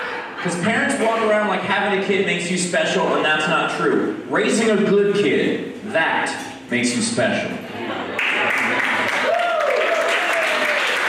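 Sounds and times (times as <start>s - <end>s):
laughter: 0.0s - 1.4s
speech: 0.4s - 8.0s
crowd applauding: 8.1s - 11.0s.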